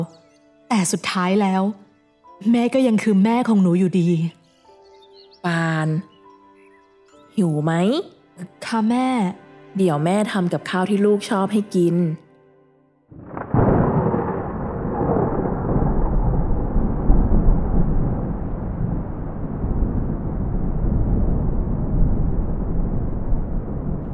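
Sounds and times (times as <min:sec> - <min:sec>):
speech: 0:00.0 - 0:04.4, 0:05.4 - 0:06.1, 0:07.4 - 0:12.2
heavy rain pouring at night: 0:13.2 - 0:24.1.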